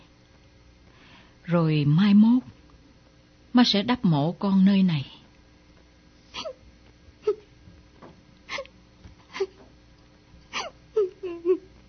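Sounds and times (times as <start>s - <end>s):
speech: 1.5s - 2.5s, 3.6s - 5.2s
person sobbing: 7.2s - 7.5s, 9.3s - 9.6s, 10.5s - 11.7s.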